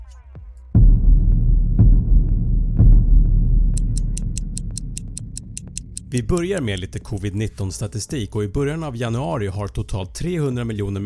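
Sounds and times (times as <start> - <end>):
low throbbing rumble: 0.8 - 7.7
clock ticking as a timer: 3.8 - 7.4
speech: 6.1 - 11.0.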